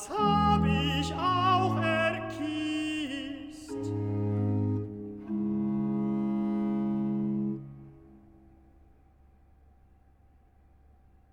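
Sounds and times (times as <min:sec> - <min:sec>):
tenor singing recitative: 0:00.0 - 0:07.5.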